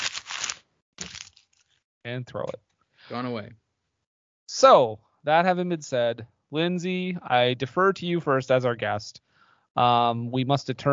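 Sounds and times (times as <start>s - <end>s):
something being crumpled up: 0.0s - 1.7s
speech: 2.0s - 3.6s, 4.5s - 10.9s.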